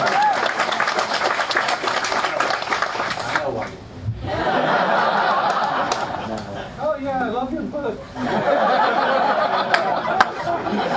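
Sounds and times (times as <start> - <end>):
audience applause at a talk: 0.0 - 3.8, 4.9 - 6.4, 8.8 - 10.9
laughter: 4.2 - 6.8, 8.1 - 10.9.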